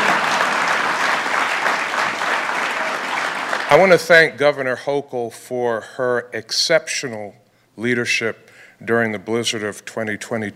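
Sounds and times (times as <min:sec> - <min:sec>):
crowd applauding: 0:00.0 - 0:04.0
speech: 0:03.7 - 0:10.5.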